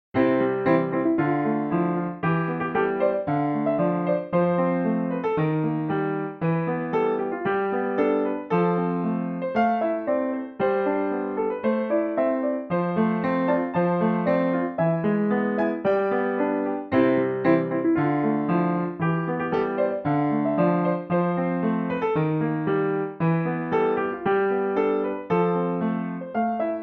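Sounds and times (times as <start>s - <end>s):
piano: 0.1s - 26.8s.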